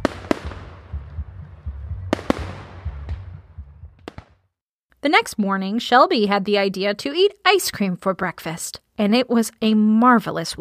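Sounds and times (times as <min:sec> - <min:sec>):
fireworks exploding over a lake: 0:00.0 - 0:01.2, 0:02.1 - 0:04.4
speech: 0:05.0 - 0:10.6.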